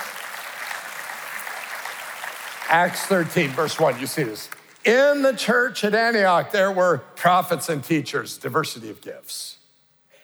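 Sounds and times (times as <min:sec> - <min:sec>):
audience clapping: 0:00.0 - 0:05.6
speech: 0:02.7 - 0:09.6.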